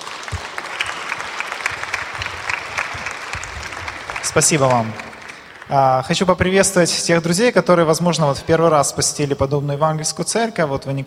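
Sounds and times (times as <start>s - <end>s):
audience applauding in an evangelical church: 0.0s - 6.9s
speech: 4.4s - 5.1s, 5.7s - 11.0s.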